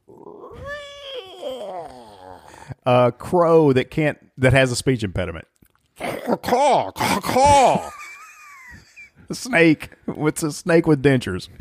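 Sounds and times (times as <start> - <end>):
voice imitating haunted house door creaking: 0.0 - 2.5
speech: 1.8 - 5.5, 6.3 - 8.0, 9.3 - 11.5.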